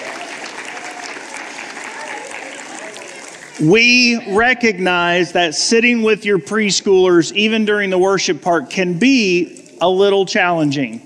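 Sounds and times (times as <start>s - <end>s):
crowd audience applauding: 0.0s - 4.1s
speech: 3.6s - 11.0s.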